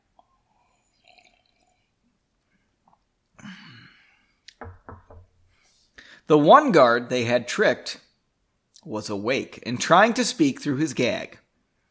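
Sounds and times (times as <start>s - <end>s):
person gulping: 0.0s - 4.6s
person sipping from a glass: 0.1s - 3.1s
speech: 6.3s - 8.0s, 8.8s - 11.4s.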